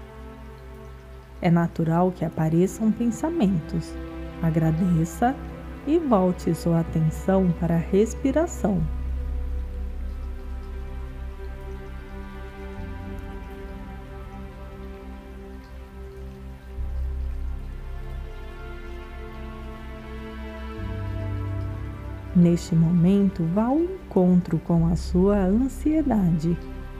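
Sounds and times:
light rain pattering: 0.0s - 26.9s
soft sustained musical drone with low chords: 0.0s - 26.9s
speech: 1.4s - 9.0s, 22.4s - 26.8s.

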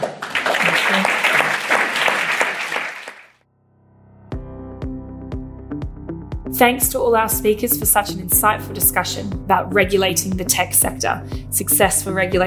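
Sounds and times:
audience applause thanking a panel after a discussion: 0.0s - 3.4s
speech: 6.6s - 12.4s.

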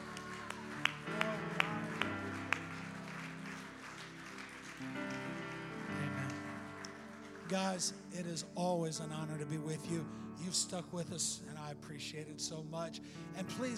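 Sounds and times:
audience clapping hands: 0.0s - 8.8s
speech: 7.5s - 13.7s.

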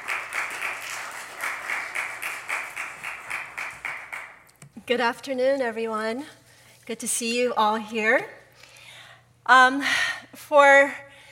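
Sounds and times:
crowd applauding: 0.0s - 4.5s
speech: 4.9s - 8.4s, 9.5s - 11.0s.

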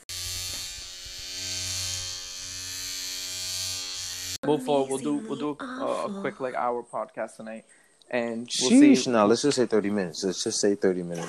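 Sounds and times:
electric razor shaving: 0.0s - 4.4s
speech: 4.4s - 11.2s.

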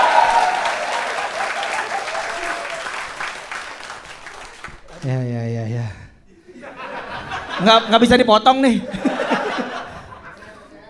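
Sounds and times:
crowd applause: 0.0s - 5.1s
speech: 5.0s - 6.0s, 7.6s - 9.0s
laughter: 6.4s - 10.8s.

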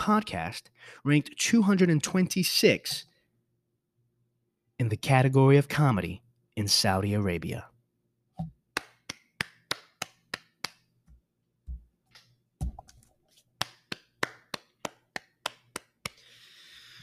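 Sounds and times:
speech: 0.0s - 3.1s, 4.8s - 7.7s
hand clapping: 8.7s - 10.9s, 13.6s - 16.3s.

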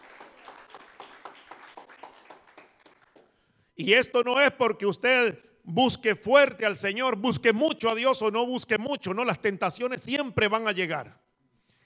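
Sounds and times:
rhythmic audience applause: 0.0s - 3.6s
speech: 3.8s - 11.2s.

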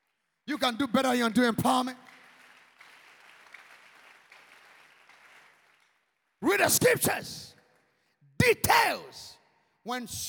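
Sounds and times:
audience clapping: 0.0s - 8.0s
speech: 0.5s - 2.1s, 6.4s - 7.5s, 8.4s - 10.2s.

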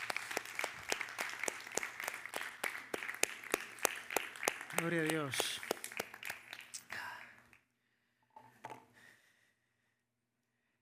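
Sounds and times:
audience applause: 0.0s - 7.5s
speech: 4.8s - 5.6s.

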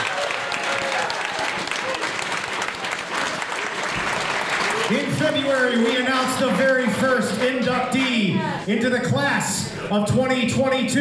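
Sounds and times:
audience applause: 0.0s - 8.3s
speech: 4.9s - 10.9s.

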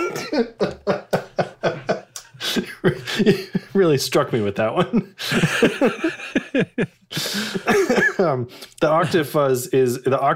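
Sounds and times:
person burping: 0.0s - 0.8s
laughter: 0.0s - 3.8s, 4.8s - 8.4s
speech: 0.3s - 0.8s, 2.8s - 7.6s, 8.2s - 10.3s.

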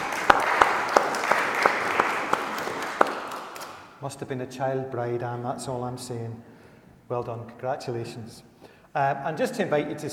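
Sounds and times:
audience applauding: 0.0s - 3.9s
speech: 4.0s - 6.5s, 7.1s - 10.1s.

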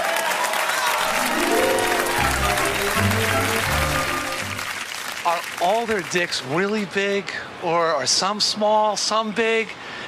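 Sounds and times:
crowd cheering: 0.0s - 5.6s
crowd clapping: 0.0s - 6.6s
speech: 5.2s - 10.0s.

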